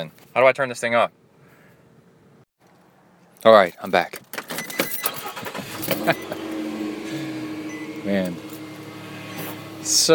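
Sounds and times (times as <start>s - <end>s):
speech: 0.0s - 1.2s, 3.4s - 4.3s, 5.8s - 6.4s, 8.0s - 8.4s, 9.8s - 10.1s
car driving: 5.1s - 10.1s.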